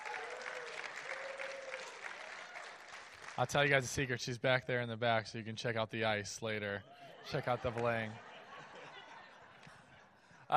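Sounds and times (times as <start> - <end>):
audience applause: 0.0 - 3.8
speech: 3.4 - 8.3
laughter: 6.8 - 10.5.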